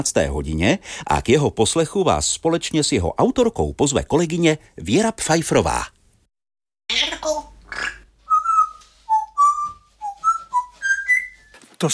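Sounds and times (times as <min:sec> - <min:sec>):
speech: 0:00.0 - 0:06.0
pet parrot squawking: 0:07.7 - 0:08.7
pet parrot whistling: 0:08.3 - 0:11.6.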